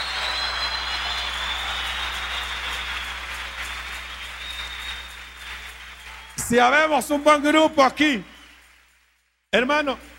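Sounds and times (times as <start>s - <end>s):
audience applause: 0.0s - 9.1s
speech: 6.5s - 8.3s, 9.5s - 10.1s.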